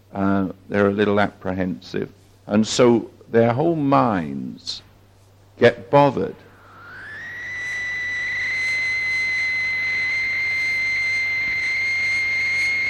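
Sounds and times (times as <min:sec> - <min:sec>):
speech: 0:00.1 - 0:04.9, 0:05.6 - 0:06.5
high-pitched whine: 0:06.2 - 0:12.8.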